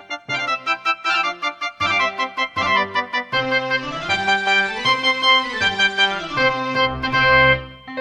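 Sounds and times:
partial classical concerto on a MIDI synthesizer: 0.2s - 7.9s.

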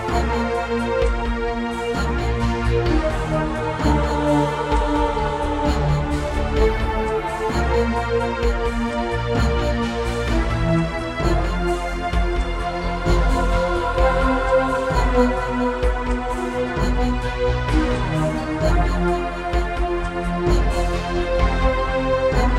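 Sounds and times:
Serdaco Dreamblaster X2GS synthesizer music: 0.0s - 22.5s.

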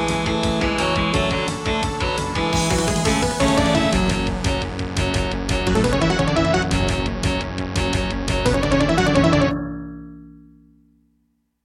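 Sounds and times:
intro music on Serdaco Crystal Blaster C1: 1.1s - 9.8s.

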